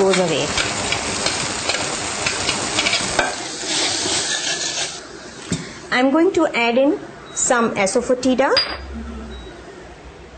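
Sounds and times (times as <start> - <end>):
half-cooked peas frying in light soy oil: 0.0 - 5.1
speech: 0.1 - 0.7, 5.9 - 9.0
soft stirring scrapes: 2.2 - 5.0.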